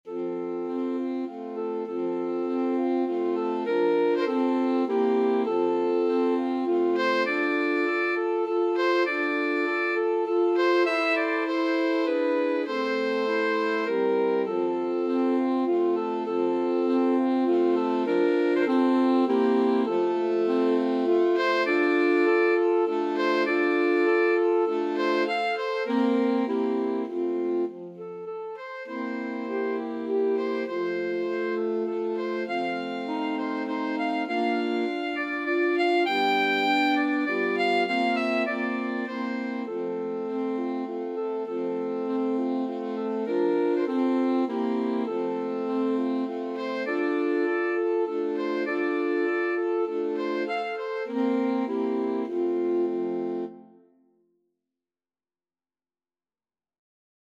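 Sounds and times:
alto sax quartet playing a waltz: 0.0s - 53.8s.

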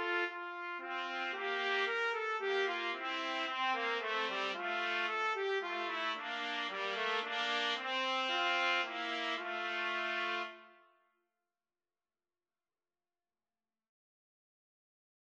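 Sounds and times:
trumpet duet: 0.0s - 10.8s.

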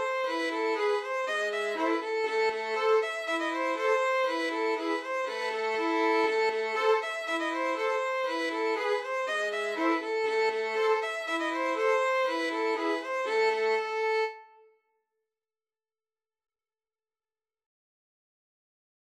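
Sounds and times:
violin trio playing a bulgarish: 0.0s - 14.6s.

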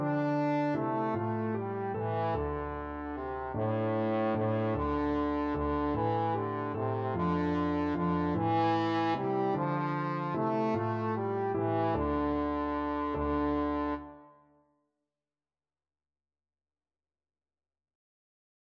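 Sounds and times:
trombone: 0.0s - 14.3s.

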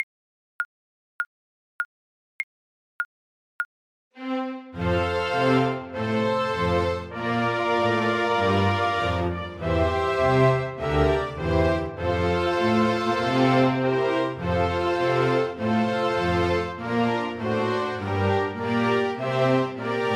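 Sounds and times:
flute melody: 4.8s - 20.1s.

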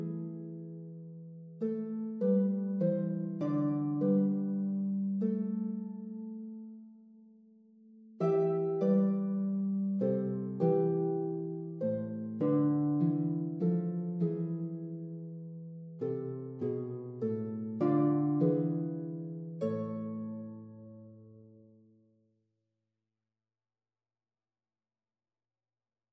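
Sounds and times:
harp: 0.0s - 7.3s, 8.2s - 21.7s.

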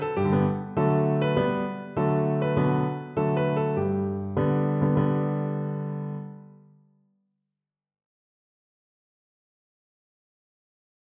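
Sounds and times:
piano playing a march: 0.0s - 6.4s.

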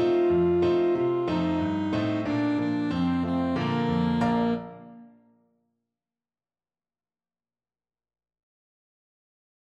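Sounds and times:
alto saxophone: 0.0s - 5.1s.

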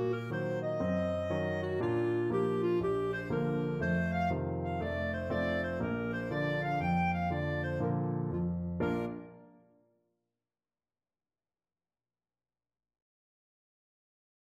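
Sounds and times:
clarinet melody: 0.0s - 9.8s.

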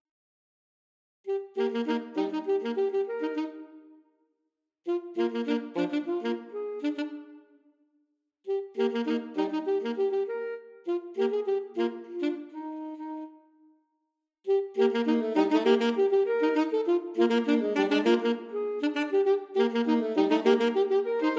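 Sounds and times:
alto saxophone duet playing a folk tune: 1.3s - 3.9s, 4.9s - 7.4s, 8.5s - 13.5s, 14.5s - 21.3s.

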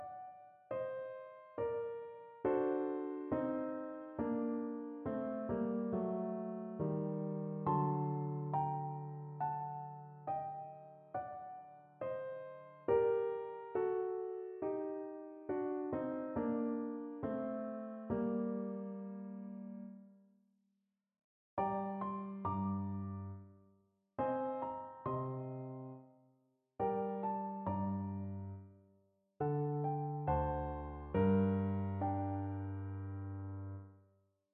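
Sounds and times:
classical piano piece: 0.0s - 20.1s, 21.6s - 23.6s, 24.2s - 26.1s, 26.8s - 28.8s, 29.4s - 34.0s.

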